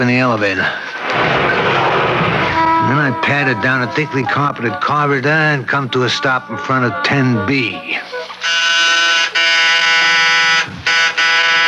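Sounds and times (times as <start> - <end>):
speech: 0.0 - 1.6, 2.9 - 8.6
harsh loud electric door buzzer: 8.4 - 11.6.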